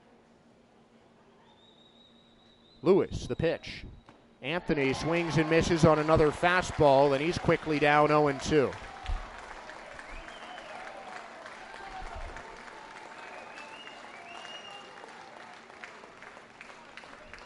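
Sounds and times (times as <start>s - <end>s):
speech: 2.8s - 8.9s
St. Lucie Mets fans applauding: 4.7s - 17.4s.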